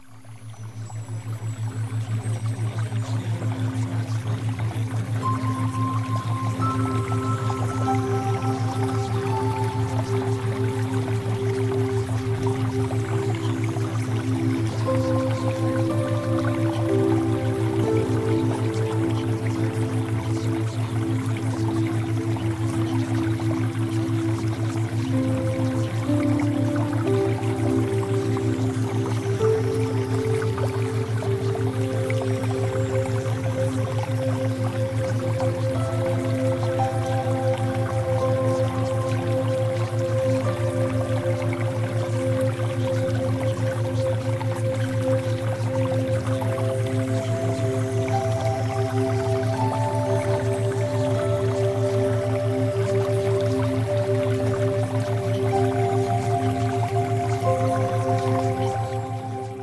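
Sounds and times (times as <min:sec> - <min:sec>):
theta wave music: 0:00.2 - 0:59.6.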